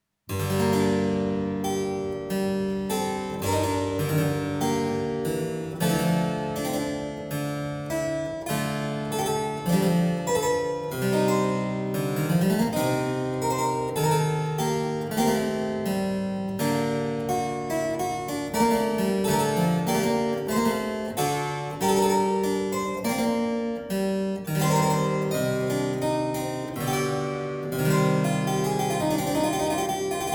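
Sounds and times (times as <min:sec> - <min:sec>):
harpsichord praeludium: 0:00.3 - 0:30.3.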